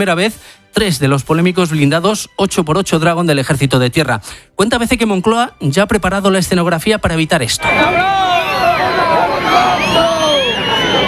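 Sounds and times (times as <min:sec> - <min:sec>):
speech: 0:00.0 - 0:10.1
crowd booing at a military parade: 0:07.6 - 0:11.0.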